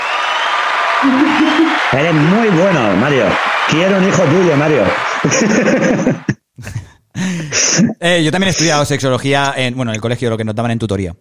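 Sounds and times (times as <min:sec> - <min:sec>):
applause: 0:00.0 - 0:06.3
laughter: 0:01.0 - 0:02.3, 0:03.4 - 0:08.0
speech: 0:01.0 - 0:11.1.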